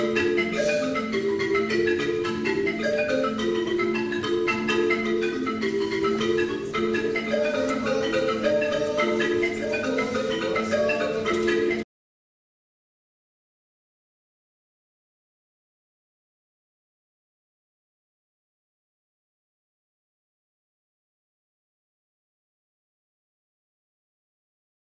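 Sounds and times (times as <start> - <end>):
bambuco music: 0.0 - 11.8.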